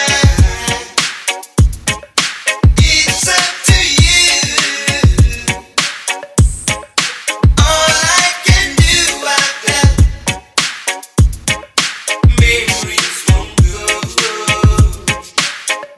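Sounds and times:
90s reggae music: 0.0s - 15.9s.

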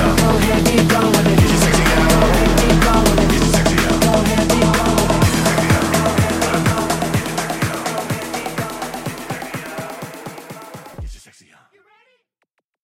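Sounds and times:
bass mix at 125 BPM: 0.0s - 10.0s.

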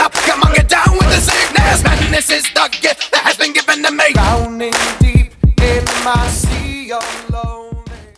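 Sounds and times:
record scratching: 0.0s - 4.4s
party breakbeat: 0.0s - 8.1s.

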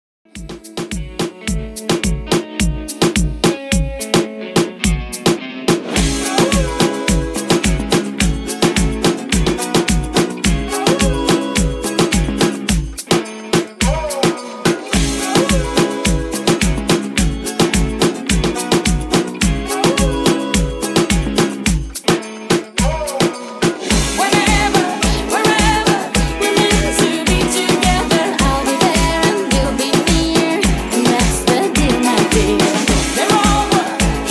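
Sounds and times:
reggaeton music: 0.3s - 34.2s.

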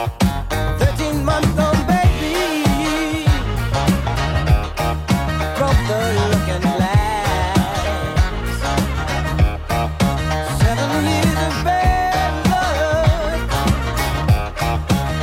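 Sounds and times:
1970s style drum beat: 0.0s - 15.2s.

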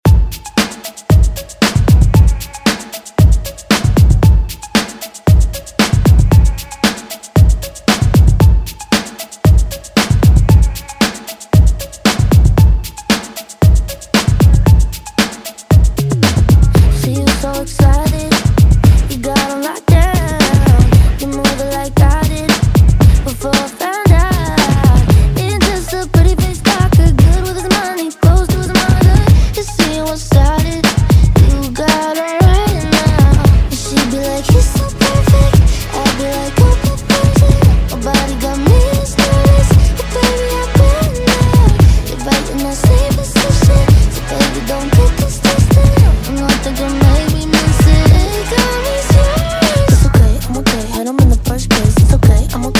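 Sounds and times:
Top40 pop music: 0.0s - 52.7s.

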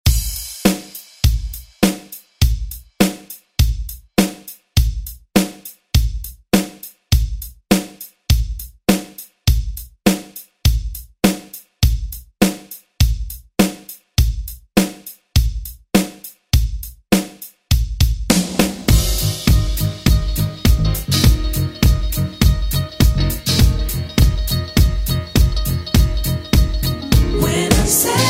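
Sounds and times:
90s drum beat: 0.0s - 28.2s.

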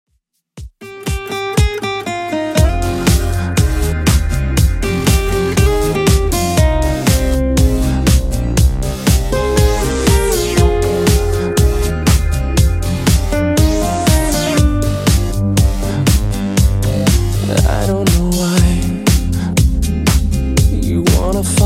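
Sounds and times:
Redrum drum machine beat at 120 BPM: 0.5s - 21.6s.

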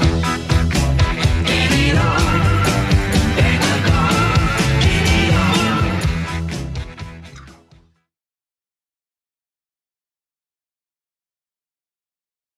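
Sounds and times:
seventies drum machine beat at 125 bpm: 0.0s - 7.3s.

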